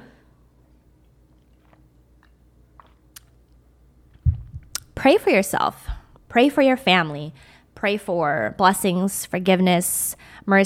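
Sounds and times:
person drinking water: 1.0s - 3.6s, 4.2s - 4.9s
low hum: 4.1s - 5.1s
dull thump: 4.2s - 4.8s
mouth clicks: 4.3s - 5.0s
speech: 5.0s - 10.6s.

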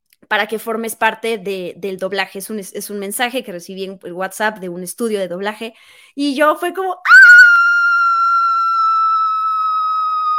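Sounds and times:
speech: 0.3s - 7.2s
excited scream: 7.1s - 10.3s.

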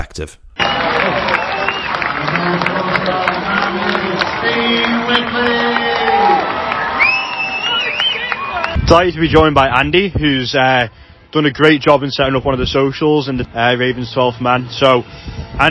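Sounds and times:
speech: 0.0s - 1.3s, 2.2s - 6.6s, 8.9s - 15.7s
sharp rising whistles: 0.6s - 2.0s, 7.0s - 8.8s
sports crowd cheering and applauding: 0.6s - 8.8s.

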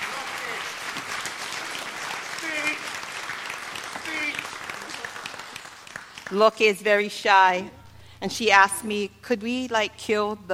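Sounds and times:
church applause: 0.0s - 6.5s
speech: 6.3s - 10.5s.

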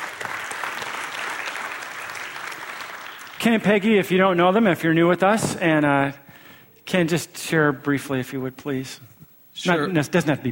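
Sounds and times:
church congregation applause welcoming a family: 0.0s - 4.9s
speech: 3.4s - 6.2s, 6.9s - 10.5s.

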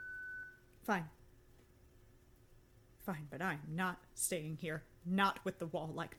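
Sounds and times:
electronic beep: 0.0s - 0.6s
speech: 0.8s - 1.2s, 3.1s - 6.1s.

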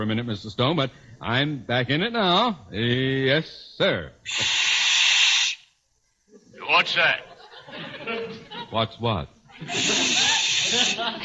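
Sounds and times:
speech: 0.0s - 4.6s, 6.8s - 11.2s
person hissing: 4.2s - 5.8s, 9.6s - 11.1s
laughter: 6.3s - 8.9s, 9.5s - 11.2s.

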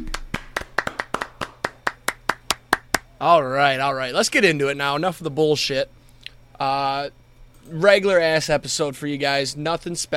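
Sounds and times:
hand clapping: 0.0s - 3.1s
speech: 3.2s - 6.0s, 6.6s - 10.1s.

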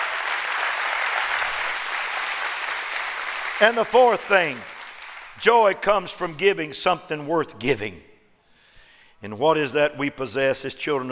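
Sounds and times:
audience clapping hands: 0.0s - 6.0s
speech: 3.6s - 4.7s, 5.4s - 8.1s, 9.2s - 11.0s.

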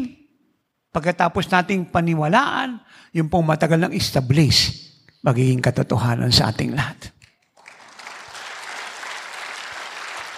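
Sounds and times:
speech: 1.0s - 7.2s
audience applause: 7.6s - 10.3s.

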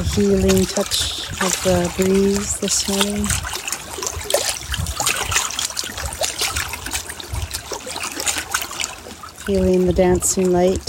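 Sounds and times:
water trickling outdoors: 0.0s - 10.8s
speech: 0.2s - 3.6s, 9.5s - 10.8s.

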